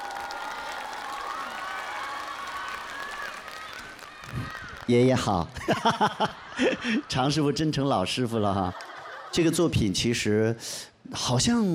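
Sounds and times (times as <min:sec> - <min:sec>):
audience applause: 0:00.0 - 0:05.4
speech: 0:04.9 - 0:11.7
laughter: 0:05.5 - 0:09.8.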